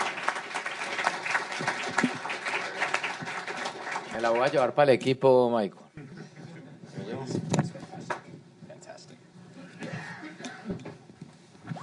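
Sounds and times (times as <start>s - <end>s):
audience applause: 0.0s - 4.9s
speech: 4.2s - 5.8s.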